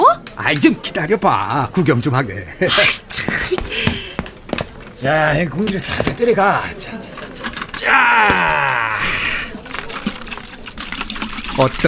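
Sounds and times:
speech: 0.4s - 4.0s, 5.0s - 7.1s, 7.8s - 9.3s, 11.6s - 11.8s
makgeolli pouring into a kettle: 8.6s - 11.8s.

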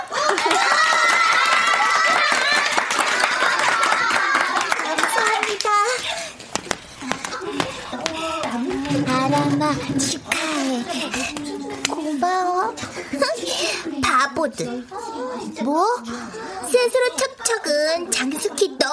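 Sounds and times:
group clapping: 0.0s - 9.5s
laughter: 0.0s - 12.1s, 12.8s - 14.0s
children cheering and chattering: 0.0s - 18.9s
speech: 14.4s - 18.9s.

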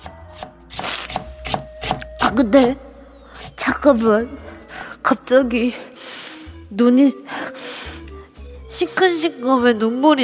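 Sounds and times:
knife chopping on a cutting board: 0.0s - 2.4s
speech: 2.3s - 2.9s, 3.8s - 4.4s, 5.1s - 5.8s, 6.7s - 7.2s, 9.0s - 10.2s.

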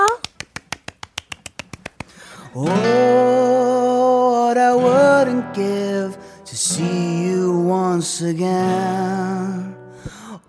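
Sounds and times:
clapping: 0.0s - 2.3s
speech: 2.6s - 3.2s, 4.5s - 9.5s.

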